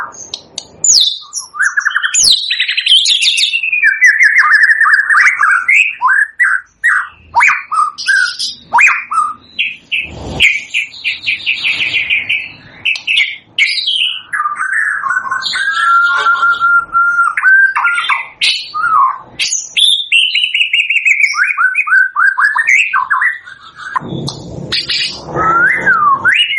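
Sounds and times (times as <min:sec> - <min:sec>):
white-rumped shama whistling and chattering: 0:00.0 - 0:26.5.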